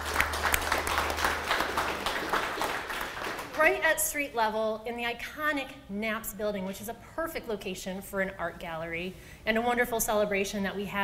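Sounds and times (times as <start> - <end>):
audience applause: 0.0 - 3.6
speech: 3.6 - 11.0.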